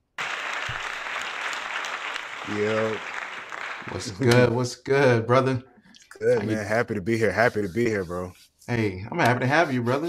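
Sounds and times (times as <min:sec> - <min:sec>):
audience applause welcoming a guest: 0:00.0 - 0:04.3
speech: 0:02.5 - 0:03.1, 0:03.9 - 0:10.0.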